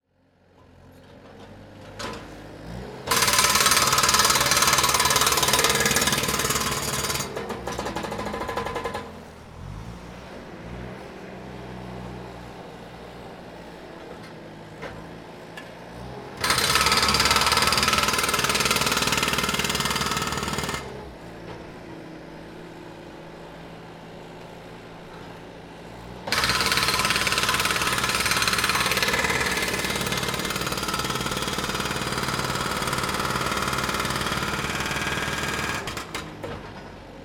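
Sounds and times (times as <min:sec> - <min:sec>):
Bobcat jackhammer: 0:03.0 - 0:09.1, 0:16.4 - 0:21.1, 0:26.3 - 0:36.5.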